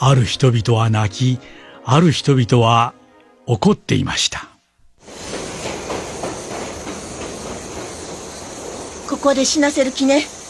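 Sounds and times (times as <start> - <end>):
speech: 0.0 - 4.5, 9.2 - 10.4
departing train rumbling along the rails: 5.0 - 10.4.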